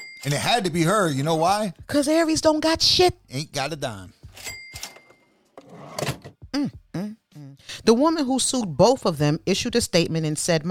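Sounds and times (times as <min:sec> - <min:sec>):
speech: 0:00.2 - 0:04.6, 0:07.9 - 0:10.6
cash register sound effect with clicks, drawer thunk and tones: 0:04.4 - 0:06.3.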